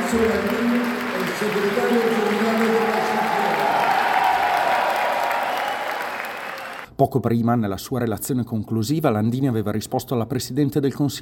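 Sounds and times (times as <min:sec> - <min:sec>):
applause of assembly delegates: 0:00.0 - 0:06.9
speech: 0:00.1 - 0:00.8, 0:01.4 - 0:02.7, 0:07.0 - 0:11.2.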